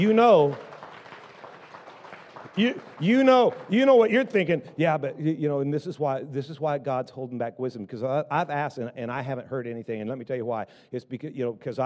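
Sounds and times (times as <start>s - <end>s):
speech: 0.0s - 0.7s, 2.6s - 11.8s
church audience hand clapping: 0.0s - 5.3s.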